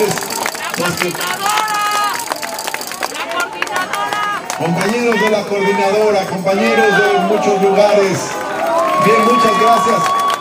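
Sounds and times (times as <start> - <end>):
speech: 0.0 - 1.8, 4.6 - 8.4, 9.0 - 10.2
loud audience applause: 0.0 - 10.4.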